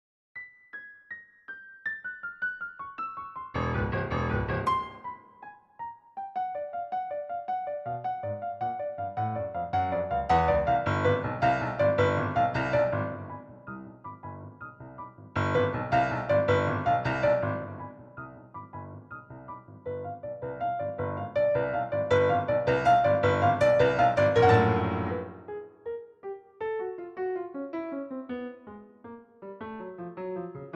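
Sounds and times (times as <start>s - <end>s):
piano sonata: 0.4s - 30.7s.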